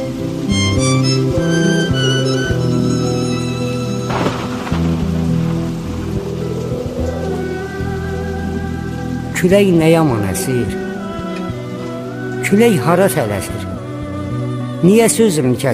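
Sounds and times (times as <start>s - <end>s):
sustained musical tones: 0.0s - 15.1s
rain pattering: 0.0s - 15.7s
speech: 9.4s - 10.9s, 12.5s - 13.7s, 14.8s - 15.7s.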